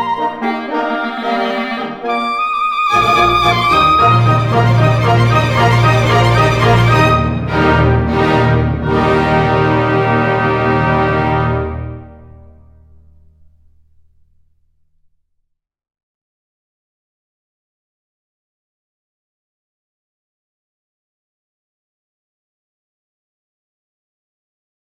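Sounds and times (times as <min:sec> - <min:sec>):
clarinet concerto in E-flat major: 0:00.0 - 0:12.6.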